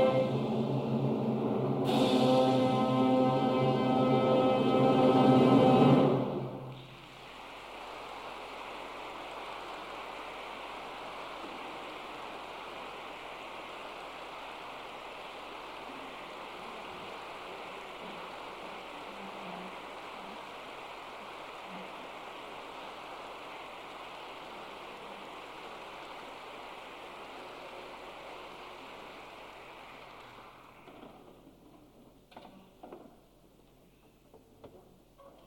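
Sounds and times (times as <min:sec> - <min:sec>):
symphonic choir: 0:00.0 - 0:06.7
orchestra: 0:00.0 - 0:06.8.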